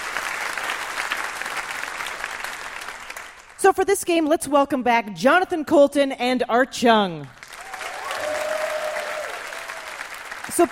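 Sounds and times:
audience applause for Piper Kerman: 0.0s - 3.6s, 7.4s - 10.7s
speech: 3.7s - 7.4s, 10.6s - 10.7s.

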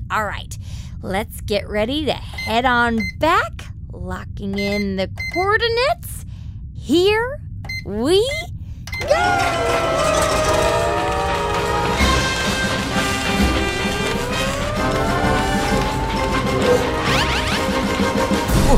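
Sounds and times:
speech: 0.1s - 6.3s, 6.9s - 10.8s
cartoon spaceship crash landing cushioned by giant bouncy castles on the front bumper: 9.3s - 18.7s.

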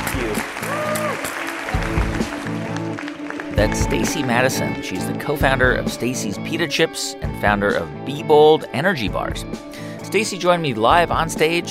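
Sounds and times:
audience applause at a live on-stage interview event: 0.0s - 4.6s
speech: 3.6s - 11.6s.

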